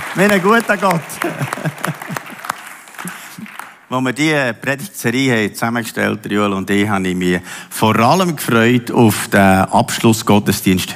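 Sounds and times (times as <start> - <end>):
audience applause: 0.0 - 3.9
speech: 0.2 - 2.4, 3.9 - 10.9
laughter: 0.9 - 3.5.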